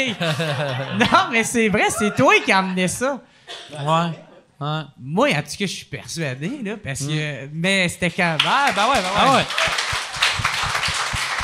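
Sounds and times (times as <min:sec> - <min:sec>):
laughter: 0:00.0 - 0:03.0
speech: 0:00.0 - 0:09.8
hands clapping: 0:08.1 - 0:11.4.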